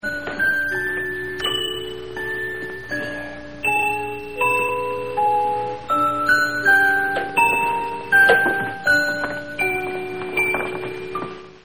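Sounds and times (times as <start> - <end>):
music: 0.0 - 11.6.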